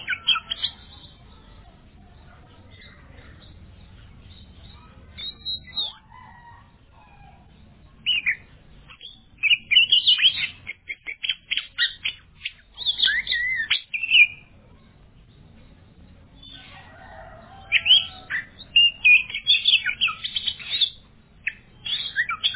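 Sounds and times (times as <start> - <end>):
Oriental magpie-robin song: 0.0 - 22.5.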